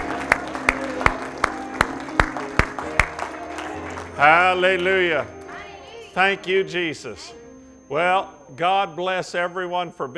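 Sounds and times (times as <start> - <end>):
audience clapping in unison: 0.0 - 5.0
low sustained musical hum: 0.0 - 10.1
speech: 4.2 - 5.4, 6.2 - 10.1.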